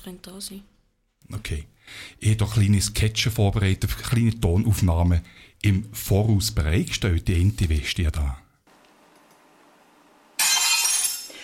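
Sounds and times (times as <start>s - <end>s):
speech: 0.0s - 8.4s
glass breaking: 10.4s - 11.4s.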